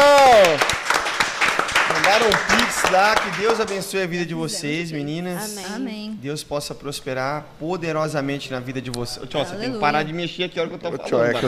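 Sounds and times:
round of applause: 0.0 - 3.9
speech: 2.2 - 11.4.

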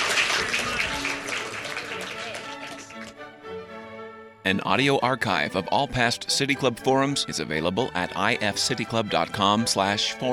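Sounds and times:
audience applause: 0.0 - 3.2
speech: 4.5 - 10.3.

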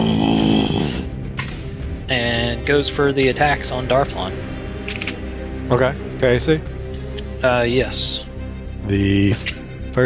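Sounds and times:
man roaring into a microphone: 0.0 - 1.2
speech: 2.7 - 4.5, 5.7 - 6.8, 7.4 - 8.1, 8.9 - 10.0.

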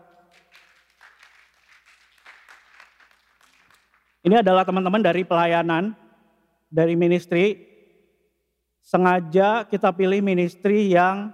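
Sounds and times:
audience applause: 0.2 - 4.2
speech: 4.2 - 6.0, 6.7 - 7.7, 8.8 - 11.3.

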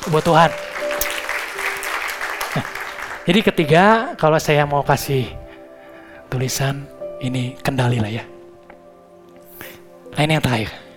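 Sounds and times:
crowd clapping: 0.0 - 3.6
speech: 0.1 - 0.7, 2.6 - 5.4, 6.3 - 8.3, 10.2 - 10.8.

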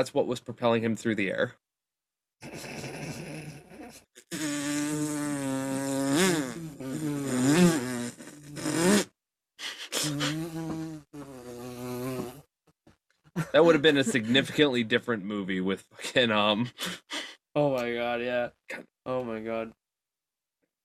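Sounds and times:
speech: 0.0 - 1.6, 13.6 - 17.0, 17.6 - 19.8
fly buzzing: 4.2 - 9.1, 10.1 - 12.4
laughter: 13.4 - 14.7.

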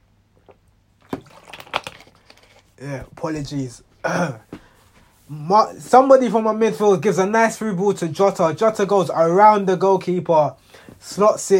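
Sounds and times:
person drinking water sloshing and swallowing: 0.3 - 2.8
speech: 2.8 - 4.5, 5.3 - 11.5.

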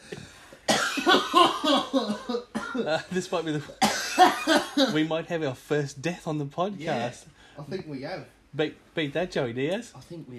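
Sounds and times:
heavy coughing: 0.0 - 5.1
speech: 2.8 - 10.3.

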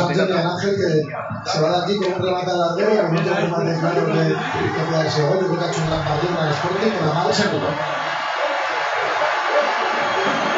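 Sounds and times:
stadium crowd cheering: 0.0 - 10.5
speech: 0.2 - 8.1
huge stadium crowd applauding a player: 4.4 - 10.5.

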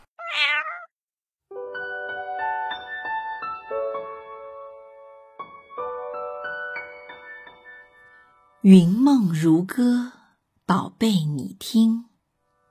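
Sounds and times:
cat meowing: 0.0 - 0.9
speech: 8.6 - 12.1.

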